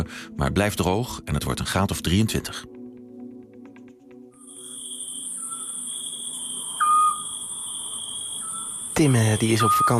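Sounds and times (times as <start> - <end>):
speech: 0.0 - 2.8, 9.0 - 9.9
crickets chirring: 4.4 - 9.9
Eurasian scops owl whistled hoot: 4.5 - 9.9.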